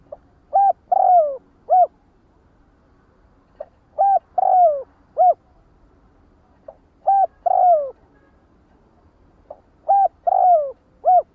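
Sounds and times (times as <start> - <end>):
spotted dove cooing: 0.0 - 2.0, 3.6 - 5.4, 7.0 - 8.0, 9.5 - 11.3.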